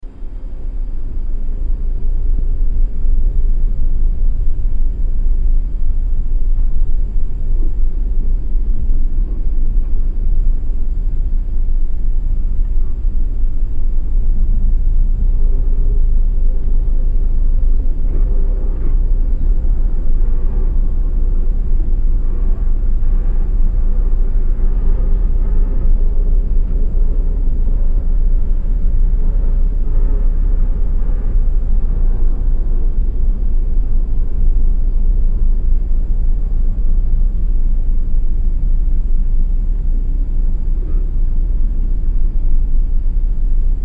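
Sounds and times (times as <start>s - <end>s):
lights off ambience: 0.0s - 43.8s.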